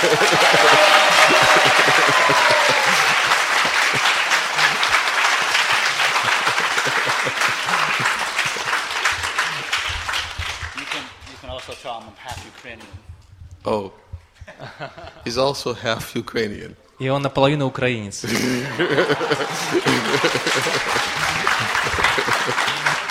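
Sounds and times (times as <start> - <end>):
large crowd applause: 0.0 - 11.8, 18.3 - 23.0
speech: 15.4 - 21.0.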